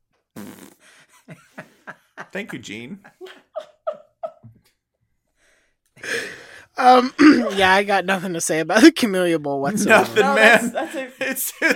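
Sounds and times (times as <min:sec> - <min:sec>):
fart sound effect from a soundboard: 0:00.4 - 0:00.8
laughter: 0:01.1 - 0:04.6, 0:09.7 - 0:11.7
speech: 0:02.3 - 0:03.2, 0:06.8 - 0:11.7.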